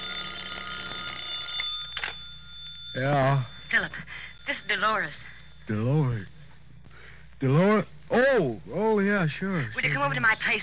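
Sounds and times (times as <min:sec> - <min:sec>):
telephone ringing on a night table: 0:00.0 - 0:06.5
speech: 0:02.9 - 0:06.4, 0:07.4 - 0:10.6.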